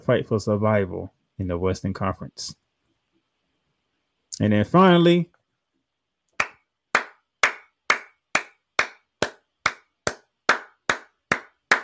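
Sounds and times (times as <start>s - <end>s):
speech: 0.0s - 2.6s, 4.4s - 5.4s
hand clapping as a round of applause for Kevin Durant: 6.4s - 11.8s.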